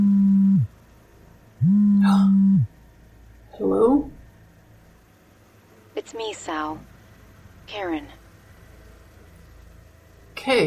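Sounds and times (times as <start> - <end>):
mobile phone vibrating: 0.0 - 0.8, 1.6 - 2.8
speech: 6.1 - 6.9, 7.7 - 8.2, 10.4 - 10.6.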